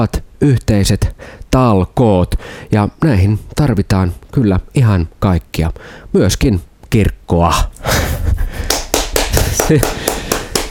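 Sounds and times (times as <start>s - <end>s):
speech: 0.0s - 8.1s, 9.6s - 10.0s
brief polite academic applause: 8.6s - 10.6s.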